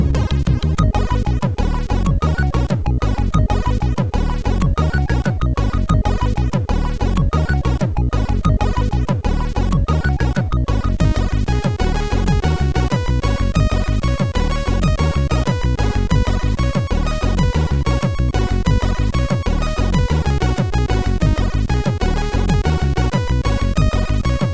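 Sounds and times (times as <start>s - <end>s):
MOS6581R4 synth bassline: 0.0s - 24.5s.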